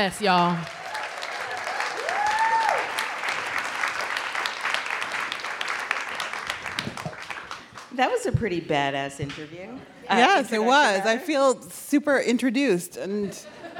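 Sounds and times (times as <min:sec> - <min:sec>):
speech: 0:00.0 - 0:00.8, 0:08.0 - 0:13.6
audience applause at On Air Fest: 0:00.5 - 0:07.9.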